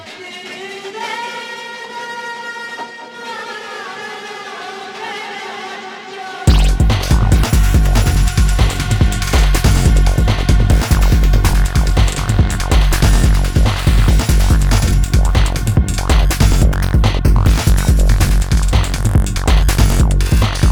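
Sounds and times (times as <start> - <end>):
digital distortion: 6.5 - 20.7.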